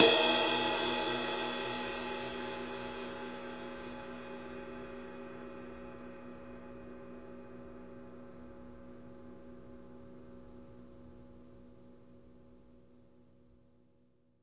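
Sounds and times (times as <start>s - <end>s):
ride cymbal one shot: 0.0s - 5.4s.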